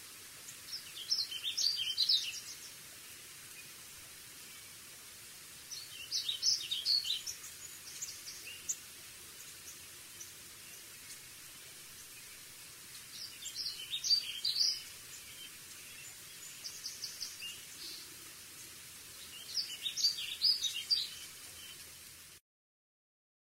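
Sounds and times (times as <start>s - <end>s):
Warbling Vireo singing in Western USA: 0.7s - 2.8s, 5.7s - 8.8s, 13.1s - 18.1s, 19.2s - 21.8s.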